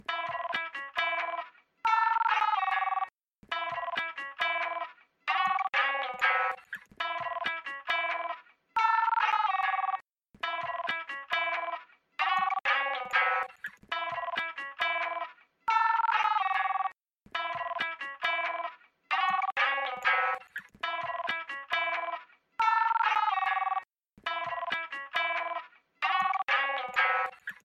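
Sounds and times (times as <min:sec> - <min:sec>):
notebook phone ringing: 0:00.0 - 0:04.0, 0:04.6 - 0:27.6.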